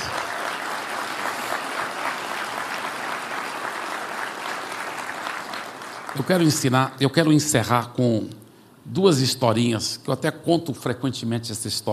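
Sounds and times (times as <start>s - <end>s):
audience applause: 0.0s - 6.7s
speech: 6.2s - 11.9s.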